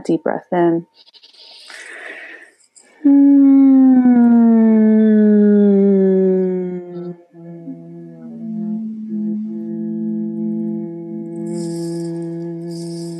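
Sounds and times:
gentle humming in a low voice: 0:02.9 - 0:13.1.

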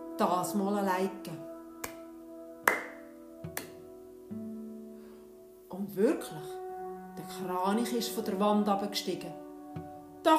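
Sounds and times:
speech: 0:00.2 - 0:01.5, 0:06.0 - 0:06.6, 0:07.2 - 0:10.3
hand clapping: 0:01.8 - 0:03.8.

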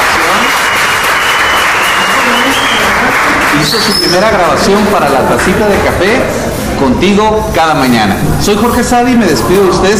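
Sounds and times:
loud crowd applause: 0:00.0 - 0:06.2
speech: 0:03.6 - 0:09.9.

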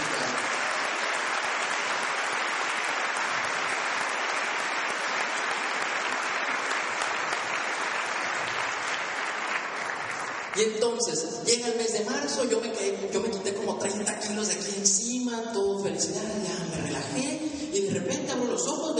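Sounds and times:
audience applause: 0:00.0 - 0:10.8
speech: 0:10.6 - 0:18.9.

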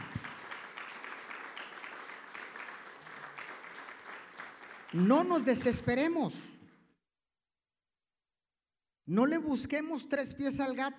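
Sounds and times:
audience clapping loudly: 0:00.0 - 0:06.2
speech: 0:04.9 - 0:06.5, 0:09.1 - 0:10.9.

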